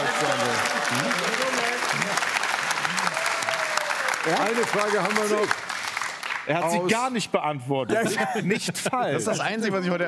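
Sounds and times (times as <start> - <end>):
audience applause: 0.0 - 6.7
speech: 4.2 - 5.6, 6.4 - 10.0.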